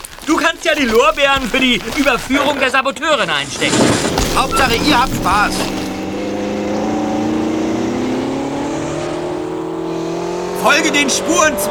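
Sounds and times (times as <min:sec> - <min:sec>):
speech: 0:00.5 - 0:05.8, 0:10.6 - 0:11.6
vehicle engine accelerating on snowy ground in a chase: 0:06.0 - 0:11.6.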